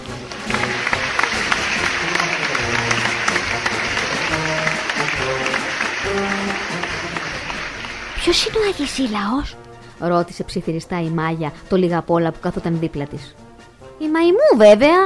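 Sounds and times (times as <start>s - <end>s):
circus audience applauding acrobats: 0.0s - 9.3s
speech: 8.2s - 13.4s, 14.0s - 15.0s.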